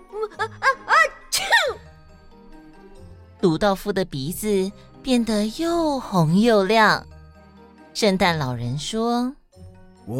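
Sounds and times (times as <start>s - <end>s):
speech: 0.1s - 0.9s, 3.4s - 7.1s, 8.0s - 9.4s
sneeze: 1.3s - 1.9s.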